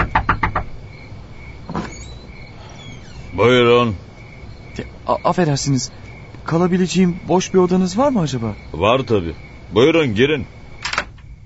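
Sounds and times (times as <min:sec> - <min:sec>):
knocking on a door: 0:00.0 - 0:00.8
speech: 0:03.4 - 0:04.0, 0:05.1 - 0:10.6.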